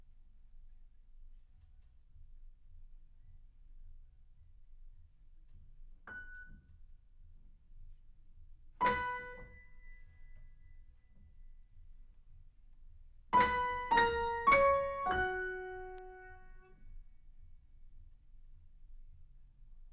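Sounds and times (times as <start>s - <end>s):
piano in a room: 6.1s - 6.9s, 8.8s - 11.4s, 13.3s - 16.8s.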